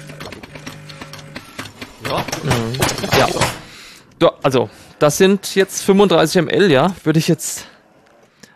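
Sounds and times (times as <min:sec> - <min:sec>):
espresso machine pump humming while brewing a shot: 0:00.0 - 0:03.8
speech: 0:02.0 - 0:03.6, 0:04.2 - 0:07.7.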